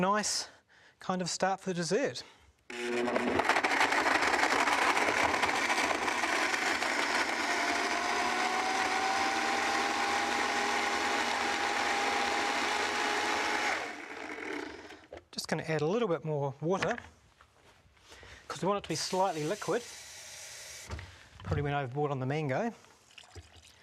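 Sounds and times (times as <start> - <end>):
speech: 0.0 - 3.4, 15.5 - 17.2, 18.6 - 20.0, 21.6 - 22.9
blender blending fruit dessert mixture: 2.7 - 15.1, 18.9 - 21.0.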